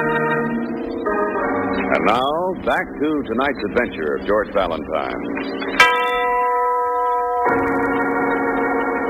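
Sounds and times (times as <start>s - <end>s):
huge tower clock chiming: 0.0s - 9.0s
speech: 1.9s - 5.9s.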